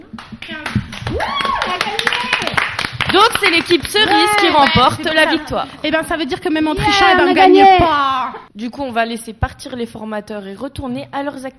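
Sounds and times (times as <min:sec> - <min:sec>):
group applause: 0:00.0 - 0:05.9
speech: 0:03.4 - 0:11.5.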